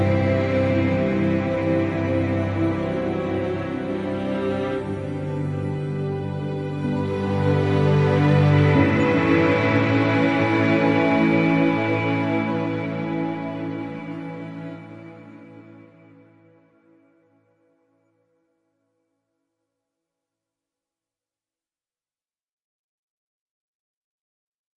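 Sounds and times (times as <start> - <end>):
ambient music: 0.0 - 17.9.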